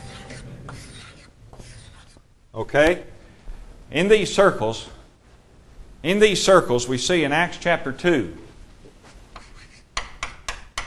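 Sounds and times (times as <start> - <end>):
chalk drawing circles on a chalkboard: 0.0 - 2.2, 9.4 - 10.1
speech: 2.6 - 3.1, 3.9 - 5.0, 6.0 - 8.5.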